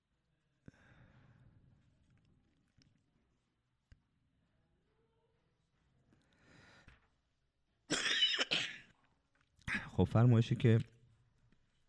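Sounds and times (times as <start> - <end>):
harsh coughing: 7.9 - 9.0
speech: 10.0 - 10.9.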